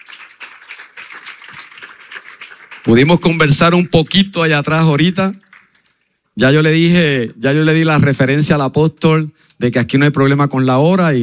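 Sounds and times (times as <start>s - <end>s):
audience applauding: 0.0s - 3.8s, 5.2s - 6.0s
speech: 2.8s - 5.4s, 6.4s - 11.2s.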